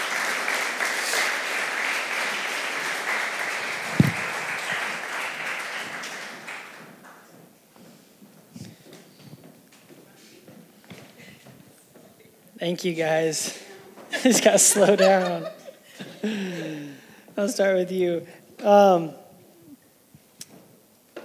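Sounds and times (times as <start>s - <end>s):
audience clapping welcoming guests to the stage: 0.0s - 7.4s
speech: 12.6s - 13.6s, 14.2s - 15.6s, 16.2s - 16.5s, 17.4s - 19.2s
laughter: 13.5s - 17.0s.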